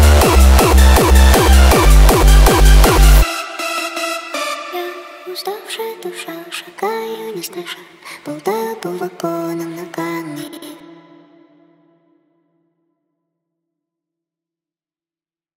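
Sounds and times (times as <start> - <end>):
hardstyle remix: 0.0 - 7.6.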